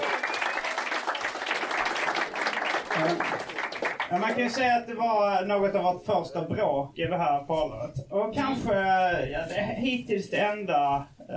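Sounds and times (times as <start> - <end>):
audience applause: 0.0 - 4.7
speech: 4.1 - 11.3.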